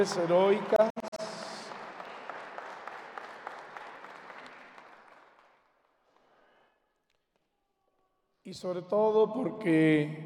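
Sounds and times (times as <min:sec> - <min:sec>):
speech: 0:00.0 - 0:01.4, 0:08.5 - 0:10.2
audience applause: 0:00.0 - 0:06.4.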